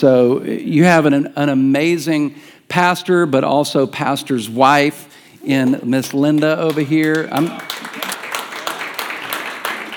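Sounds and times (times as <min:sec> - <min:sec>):
speech: 0:00.0 - 0:08.0
audience clapping: 0:06.3 - 0:09.9.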